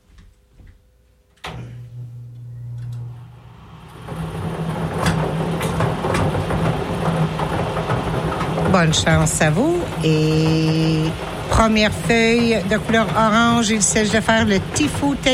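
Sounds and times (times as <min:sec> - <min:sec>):
bingo ball cage starting up: 0:03.7 - 0:15.3
speech: 0:08.8 - 0:15.3.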